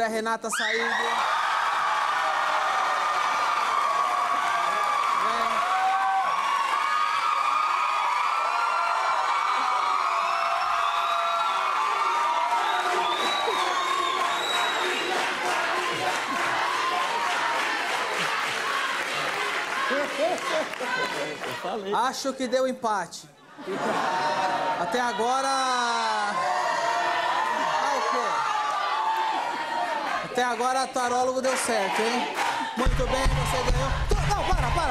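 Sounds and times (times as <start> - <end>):
speech: 0.0 - 1.4, 20.9 - 26.0, 30.4 - 34.8
whoops and shouts: 0.5 - 15.0, 25.4 - 29.6
crowd cheering and clapping: 0.6 - 22.0, 23.6 - 34.8
laughter: 12.8 - 17.0, 18.1 - 22.6, 23.4 - 28.6.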